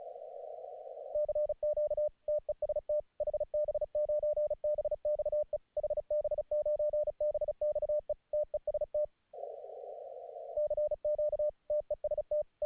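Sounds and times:
Morse code QSO for a Morse course: 1.2 - 9.1, 10.6 - 12.6.

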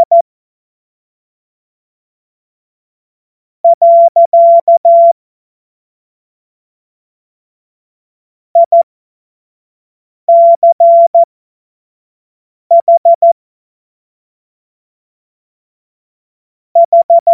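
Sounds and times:
Morse code course tones: 0.0 - 0.2, 3.7 - 5.2, 8.6 - 8.8, 10.3 - 11.3, 12.7 - 13.4, 16.8 - 17.3.

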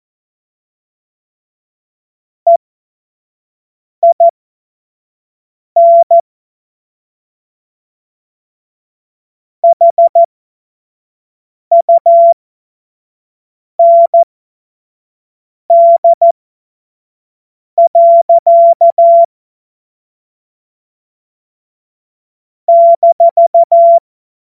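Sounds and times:
CW Morse code beeps: 4.0 - 4.3, 5.8 - 6.2, 9.6 - 10.3, 11.7 - 12.4, 13.8 - 14.3, 15.7 - 16.3, 17.8 - 19.3, 22.7 - 24.0.

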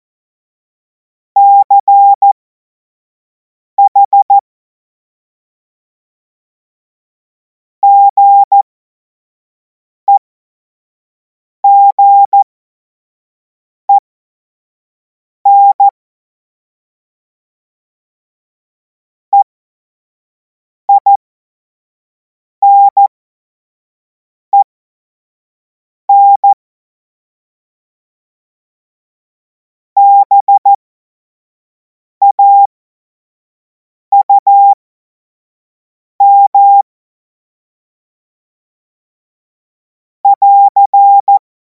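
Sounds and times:
CW Morse code beeps: 1.4 - 2.3, 3.8 - 4.4, 7.9 - 8.7, 11.7 - 12.5, 15.5 - 15.9, 20.9 - 21.2, 22.6 - 23.1, 26.1 - 26.6, 30.0 - 30.8, 32.2 - 32.7, 34.1 - 34.8, 36.2 - 36.9, 40.3 - 41.4.

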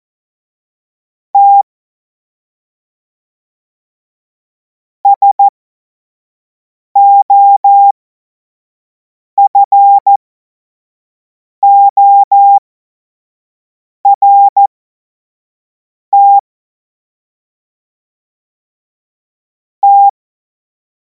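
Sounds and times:
Morse code course tones: 5.2 - 5.5, 7.0 - 7.9, 9.4 - 10.2, 11.6 - 12.6, 14.1 - 14.7, 16.2 - 16.4, 19.8 - 20.1.

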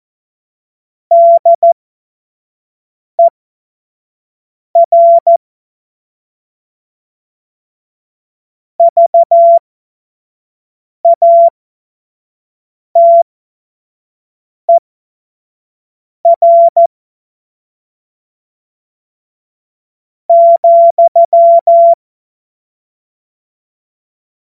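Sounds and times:
CW Morse code beeps: 1.1 - 1.8, 4.8 - 5.4, 8.8 - 9.6, 11.1 - 11.5, 13.0 - 13.2, 16.3 - 16.9, 20.3 - 22.0.

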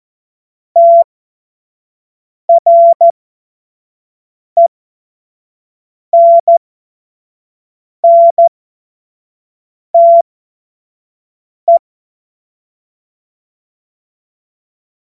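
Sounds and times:
Morse code course tones: 0.8 - 1.0, 2.5 - 3.1, 8.0 - 8.4, 10.0 - 10.2.

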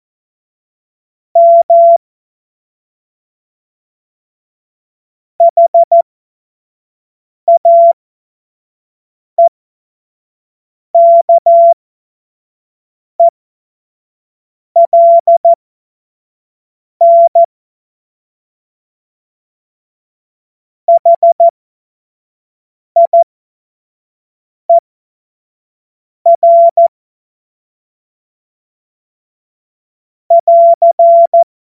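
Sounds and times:
morse code CW: 1.4 - 2.0, 5.4 - 5.9, 7.5 - 7.9, 11.0 - 11.7, 14.8 - 15.6, 17.0 - 17.5, 20.9 - 21.5, 23.0 - 23.3, 26.4 - 26.9, 30.3 - 31.5.

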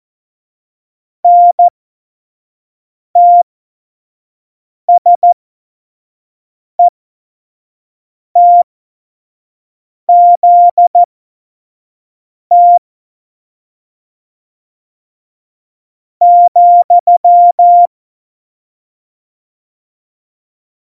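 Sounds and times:
CW Morse code beeps: 1.3 - 1.7, 3.2 - 3.4, 5.0 - 5.4, 8.4 - 8.6, 10.1 - 11.1, 12.5 - 12.8, 16.2 - 17.9.

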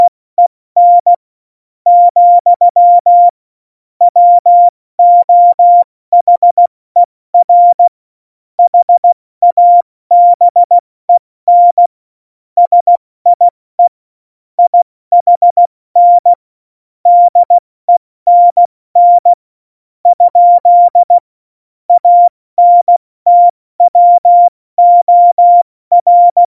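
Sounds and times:
CW Morse code beeps: 0.8 - 1.2, 1.9 - 3.4, 4.1 - 6.7, 7.4 - 7.9, 8.6 - 10.8, 11.5 - 11.9, 12.6 - 13.9, 14.6 - 16.4, 17.1 - 19.4, 20.1 - 21.2, 21.9 - 26.5.

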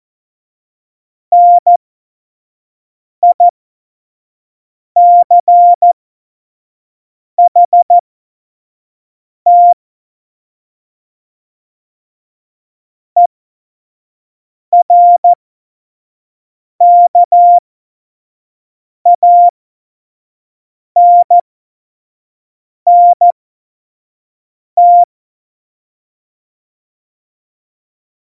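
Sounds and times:
CW Morse code at tempo 70: 1.3 - 1.8, 3.2 - 3.5, 5.0 - 6.0, 7.4 - 8.0, 9.5 - 9.8, 14.8 - 15.4, 16.8 - 17.6, 19.1 - 19.6, 21.0 - 21.4, 22.9 - 23.4, 24.8 - 25.1.

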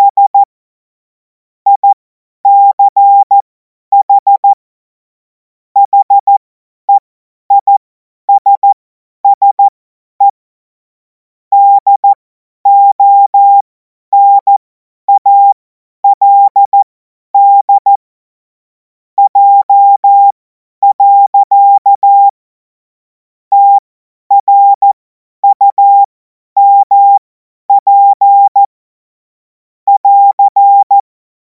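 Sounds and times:
CW Morse code beeps: 0.0 - 0.5, 1.7 - 4.6, 5.8 - 6.4, 7.5 - 10.4, 11.5 - 13.6, 14.2 - 18.0, 19.2 - 22.4, 23.5 - 28.7, 29.9 - 31.1.

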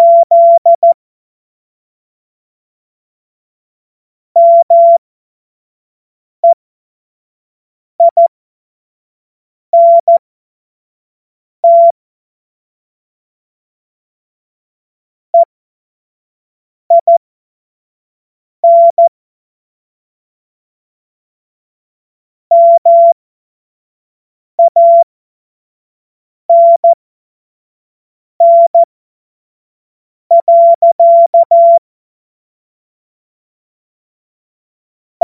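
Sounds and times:
CW morse code beeps: 0.0 - 1.0, 4.4 - 5.0, 8.0 - 8.3, 9.8 - 10.2, 11.6 - 11.9, 16.9 - 17.2, 18.6 - 19.1, 22.5 - 23.2, 24.6 - 25.0, 26.5 - 27.0, 28.4 - 28.9, 30.3 - 31.8.

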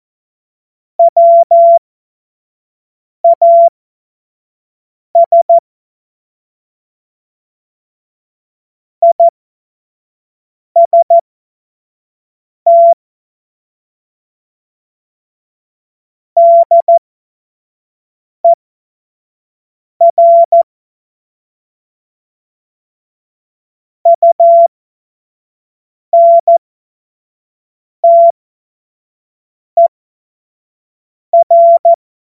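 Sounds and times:
CW Morse code beeps: 1.0 - 1.8, 3.2 - 3.7, 5.2 - 5.6, 9.0 - 9.3, 10.8 - 11.2, 12.7 - 13.0, 16.4 - 17.0, 20.0 - 20.6, 24.1 - 24.7, 26.2 - 26.6, 28.0 - 28.3, 31.4 - 32.0.

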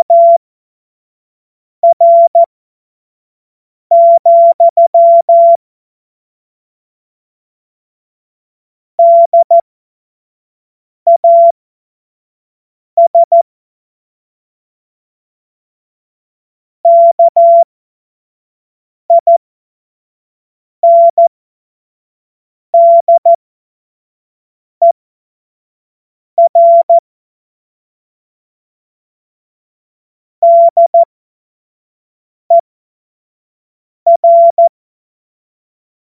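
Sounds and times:
CW Morse code beeps: 0.0 - 0.4, 1.8 - 2.5, 3.9 - 5.6, 9.0 - 9.6, 11.1 - 11.5, 13.0 - 13.4, 16.9 - 17.7, 19.1 - 19.4, 20.8 - 21.3, 22.8 - 23.4, 26.4 - 27.0, 30.4 - 31.1, 34.1 - 34.7.

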